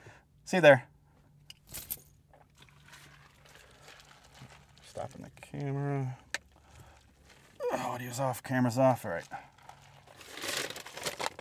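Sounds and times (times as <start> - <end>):
speech: 0.5 - 0.9, 5.0 - 6.2, 7.7 - 9.5
snack bag crinkling open: 2.5 - 5.2, 9.5 - 11.3.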